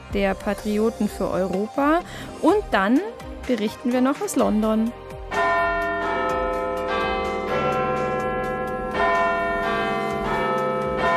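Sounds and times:
speech: 0.1 - 5.1
Big Ben clock tower bell ringing: 5.3 - 11.1.

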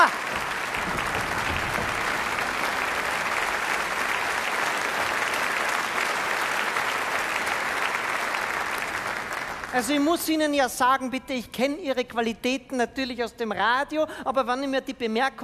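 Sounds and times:
audience applause: 0.0 - 10.3
speech: 9.8 - 15.4.

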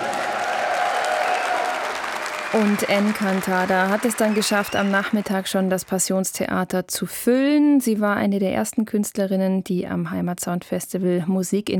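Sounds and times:
festival audience at the Passionstheater applauding a Latin-pop singer: 0.0 - 6.1
speech: 2.5 - 11.7.

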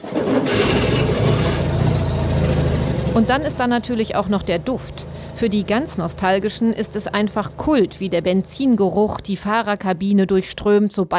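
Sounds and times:
Citroën 2CV two-cylinder engine starting and idling: 0.0 - 10.4
speech: 3.2 - 11.1.

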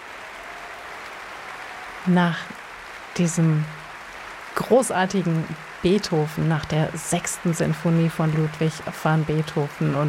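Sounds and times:
applause: 0.0 - 10.0
speech: 2.0 - 2.6, 3.2 - 3.8, 4.6 - 10.0.

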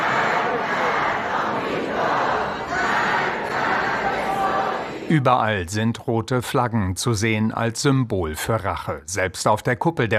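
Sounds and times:
large crowd chanting in a packed subway station: 0.0 - 5.3
speech: 5.1 - 10.1.

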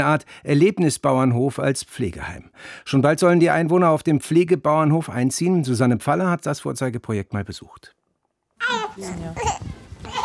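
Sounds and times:
speech: 0.0 - 8.0, 8.6 - 10.2
baby babbling on a care farm in a converted former ox stable: 8.6 - 10.2.

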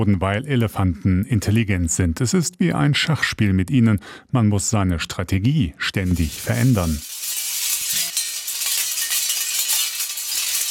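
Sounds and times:
speech: 0.0 - 7.1
metal strips clattering in the wind: 6.1 - 10.6.

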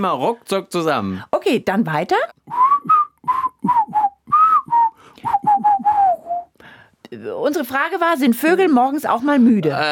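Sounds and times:
speech: 0.0 - 2.6, 7.2 - 9.9
person whistling a quick bouncy tune: 2.4 - 6.6.

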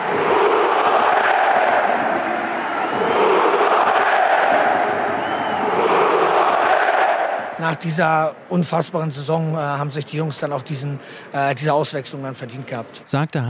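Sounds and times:
stadium crowd applause: 0.0 - 7.8
speech: 7.6 - 13.4.

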